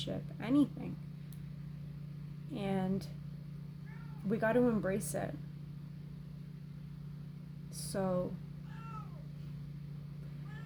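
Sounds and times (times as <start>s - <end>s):
speech: 0.0s - 1.1s, 2.5s - 3.2s, 4.2s - 5.5s, 7.7s - 8.4s
steady low hum: 0.0s - 10.6s
friendly talkative house cat meowing: 8.7s - 9.2s, 10.4s - 10.6s.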